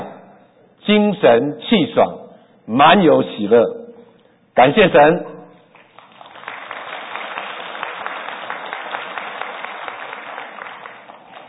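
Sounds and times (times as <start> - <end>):
speech: 0.9 - 3.8, 4.6 - 5.3
audience applause: 5.7 - 11.4.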